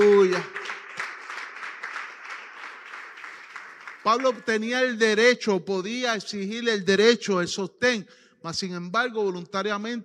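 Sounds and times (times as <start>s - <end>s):
audience applause: 0.0s - 4.8s
speech: 4.0s - 10.0s.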